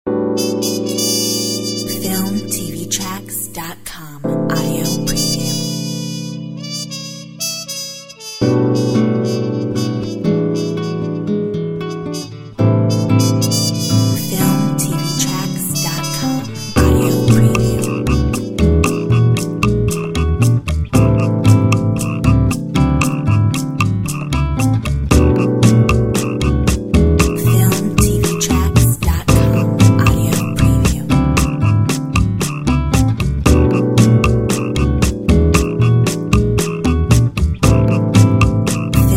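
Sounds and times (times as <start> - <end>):
lounge music: 0.1 - 39.1.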